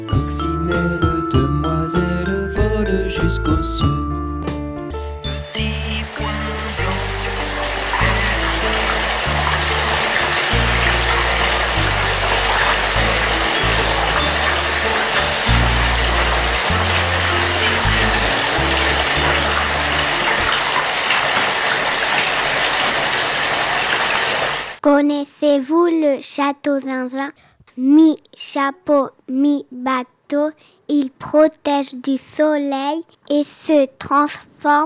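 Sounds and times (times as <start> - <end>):
low bass line of shifting notes: 0.1 - 20.3
water pouring into a bath: 5.4 - 24.8
speech: 26.3 - 34.8.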